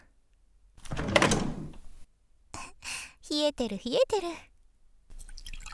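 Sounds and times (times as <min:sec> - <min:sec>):
refrigerator door opening: 0:00.9 - 0:02.0
speech: 0:03.3 - 0:04.5.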